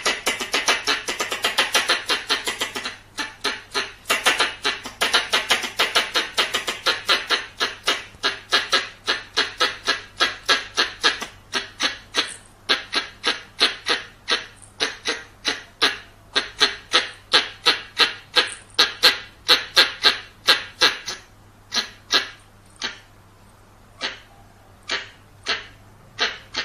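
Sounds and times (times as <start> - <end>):
squirrel chirping: 0.0 - 23.1, 24.0 - 26.6
faint low hum: 0.0 - 26.6.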